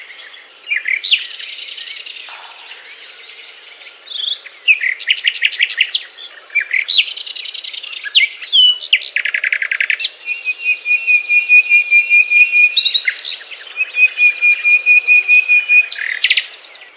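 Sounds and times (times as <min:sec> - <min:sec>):
nightingale song: 0:00.0 - 0:16.9.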